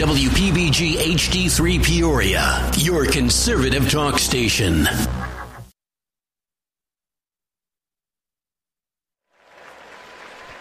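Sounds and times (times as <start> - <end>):
speech: 0.0 - 5.3
stadium crowd applauding: 9.3 - 10.5.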